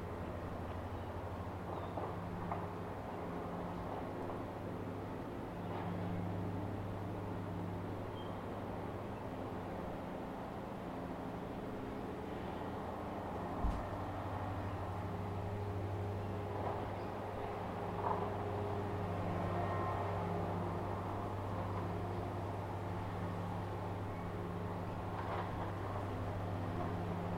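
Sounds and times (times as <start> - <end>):
low hum above Tamarama Beach near Sydney: 0.0 - 27.3.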